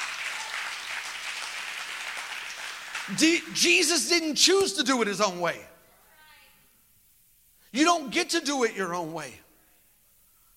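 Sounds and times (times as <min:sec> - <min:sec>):
audience clapping: 0:00.0 - 0:03.6
speech: 0:03.1 - 0:05.7, 0:07.8 - 0:09.4.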